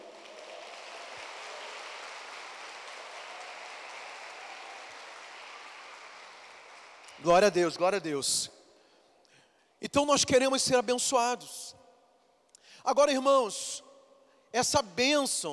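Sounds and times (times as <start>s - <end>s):
audience applause: 0.0s - 7.3s
speech: 7.2s - 8.6s, 9.8s - 11.8s, 12.8s - 13.9s, 14.5s - 15.5s.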